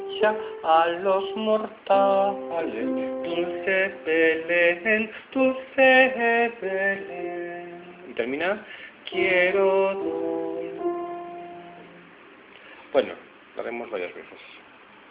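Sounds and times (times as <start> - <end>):
soprano singing: 0.0 - 8.1, 9.1 - 12.1.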